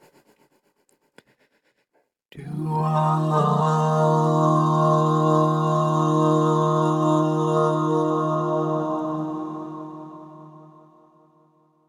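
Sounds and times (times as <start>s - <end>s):
doo wah vocals: 2.3s - 10.8s.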